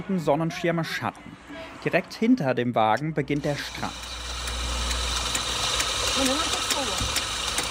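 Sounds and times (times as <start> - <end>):
speech: 0.1 - 4.2, 6.2 - 7.0
coffee grinder grinding beans: 3.4 - 7.6.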